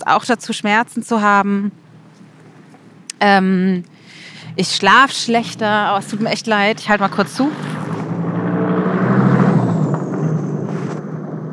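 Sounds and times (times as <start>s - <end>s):
speech: 0.0s - 1.8s, 3.2s - 7.8s
cars driving past outside: 4.2s - 11.5s.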